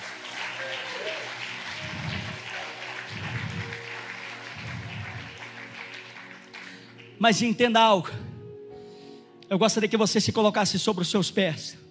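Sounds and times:
audience applause: 0.0s - 7.2s
low rhythmic thumps: 1.7s - 5.8s
speech: 7.2s - 8.3s, 9.5s - 11.8s.

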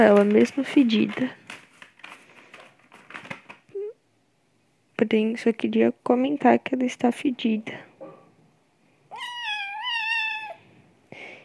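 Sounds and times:
speech: 0.0s - 1.4s, 5.0s - 7.9s
cat crying while being cleaned: 9.1s - 10.7s.

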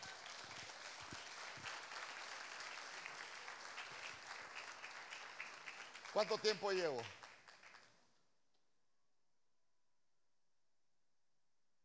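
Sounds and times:
audience applause: 0.0s - 7.9s
speech: 6.2s - 7.2s.

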